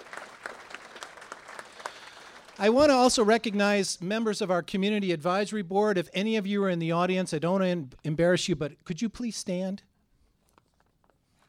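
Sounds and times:
audience applause: 0.0s - 3.6s
speech: 2.6s - 9.9s.

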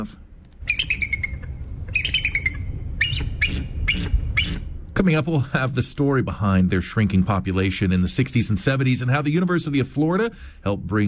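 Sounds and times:
speech: 0.0s - 0.2s, 3.5s - 11.0s
low steady rumble: 0.0s - 11.0s
American bald eagle call: 0.6s - 4.8s.

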